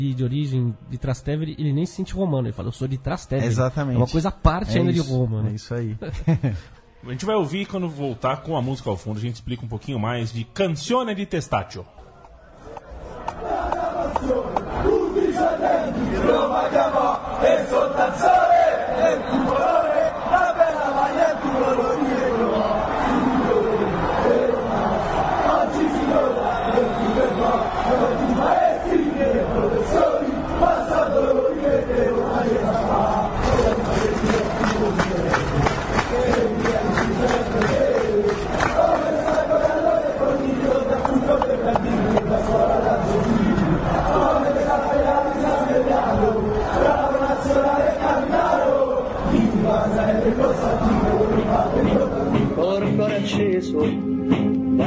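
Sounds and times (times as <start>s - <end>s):
speech: 0.0s - 12.0s
laughter: 6.0s - 7.0s
football fans chanting in a stadium: 12.4s - 54.8s.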